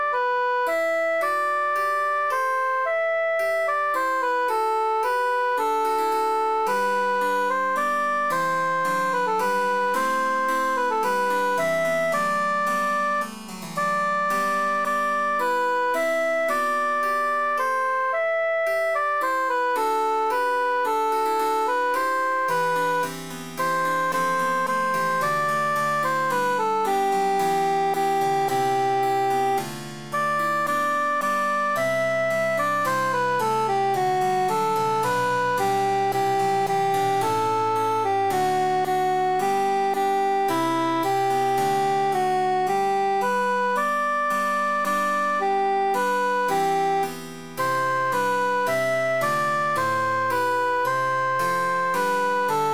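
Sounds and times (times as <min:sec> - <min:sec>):
emphasized cantus melody: 0:00.2 - 0:52.7.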